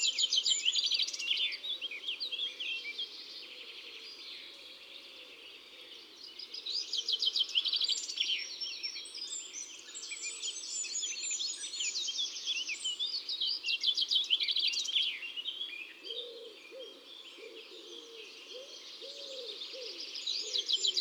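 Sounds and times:
wood pigeon singing in woods and forests: 0.0s - 20.9s
Eurasian wren singing in woods and forests: 20.6s - 20.9s.

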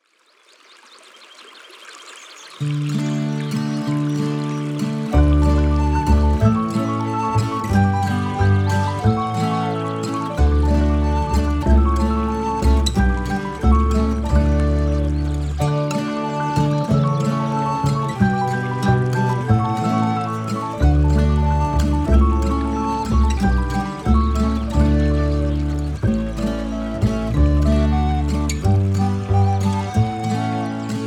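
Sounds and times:
instrumental music: 2.7s - 31.0s.

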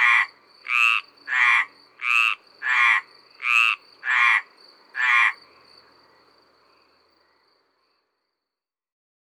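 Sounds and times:
Mediterranean tree frogs calling at the edge of a pond in Ardeche: 0.0s - 6.3s.

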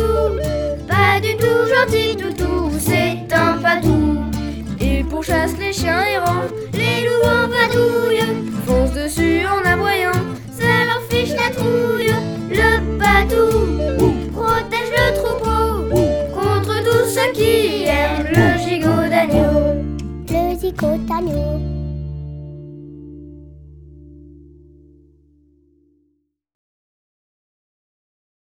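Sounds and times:
song: 0.0s - 21.6s.

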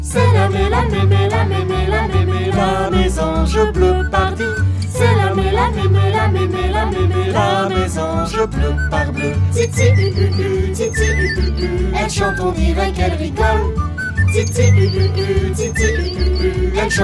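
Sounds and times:
chanson: 0.1s - 17.0s.

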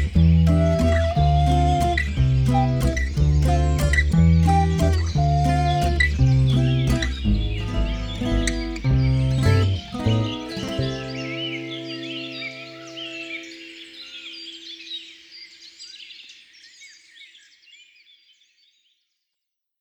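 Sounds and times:
instrumental music: 0.0s - 14.2s.

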